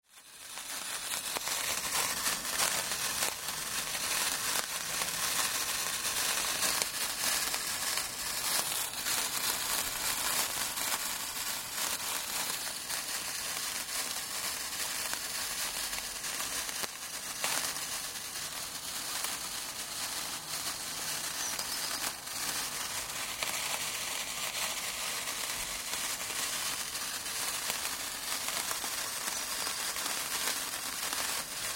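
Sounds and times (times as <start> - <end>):
sparkler fizzing: 0.0 - 31.7
fuse burning: 0.1 - 31.7.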